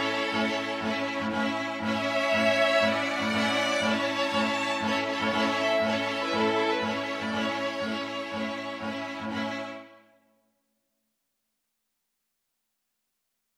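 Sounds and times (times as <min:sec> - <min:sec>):
string quartet: 0:00.0 - 0:10.0.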